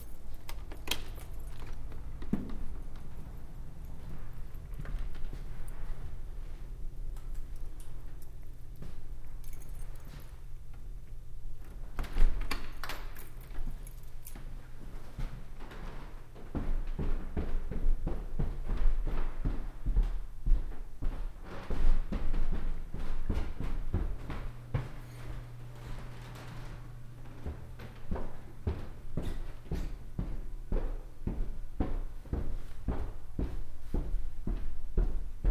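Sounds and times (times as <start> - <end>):
keys locking a door: 0.0 - 5.7, 7.1 - 10.8, 11.6 - 14.6
footsteps down stairs: 0.0 - 35.5.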